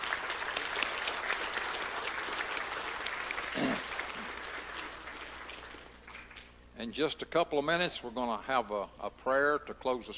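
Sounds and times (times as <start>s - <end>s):
audience applause: 0.0s - 6.5s
speech: 6.8s - 10.1s.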